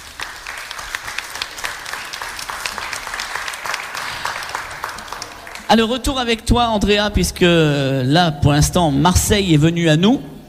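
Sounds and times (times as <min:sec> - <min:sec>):
crowd applauding loudly: 0:00.0 - 0:06.3
speech: 0:05.7 - 0:10.3.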